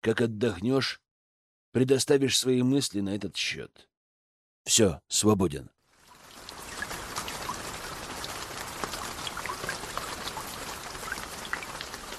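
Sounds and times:
speech: 0.0 - 1.0, 1.7 - 3.9, 4.6 - 5.8
steady rain: 5.9 - 12.1.

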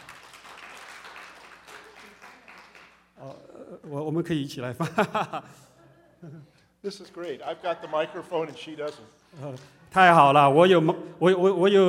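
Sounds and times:
audience applauding: 0.0 - 3.5, 7.1 - 9.8
speech: 3.2 - 11.8
laughter: 4.8 - 6.6, 7.4 - 8.6.

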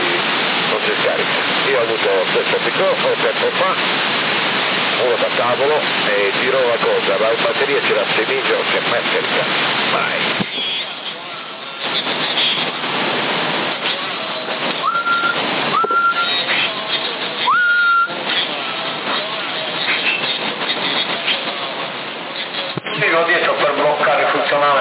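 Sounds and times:
band-limited CB radio static hiss: 0.0 - 24.8
speech: 1.1 - 10.7, 11.8 - 13.2
CB radio carrier whistle tones: 14.8 - 16.4, 17.4 - 18.1.

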